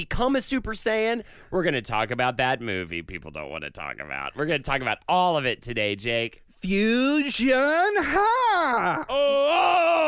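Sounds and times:
speech: 0:00.0 - 0:10.0
man's weird scream: 0:07.8 - 0:10.0.

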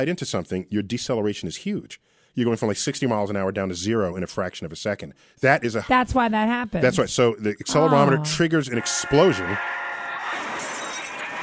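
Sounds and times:
speech: 0:00.0 - 0:09.8
car crash sound effect: 0:09.6 - 0:11.4.

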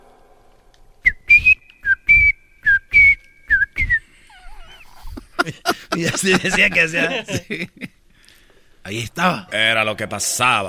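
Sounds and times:
person whistling a chirpy birdlike tune: 0:01.0 - 0:04.6
laughter: 0:04.3 - 0:07.9
speech: 0:05.5 - 0:07.9, 0:08.9 - 0:10.6.

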